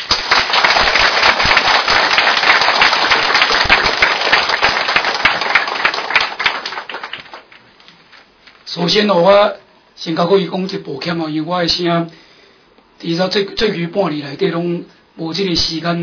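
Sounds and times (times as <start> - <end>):
crowd applauding: 0.0 - 7.6
speech: 8.8 - 12.2, 13.0 - 16.0.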